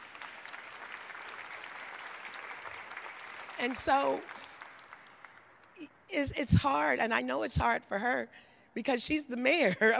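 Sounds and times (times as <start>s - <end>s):
audience applause: 0.0s - 5.5s
speech: 3.6s - 4.5s, 5.8s - 9.9s.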